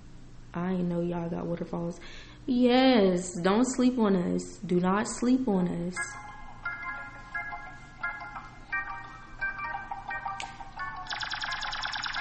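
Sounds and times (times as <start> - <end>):
speech: 0.6 - 6.3
tinny bright electronic background music melody: 6.0 - 12.1.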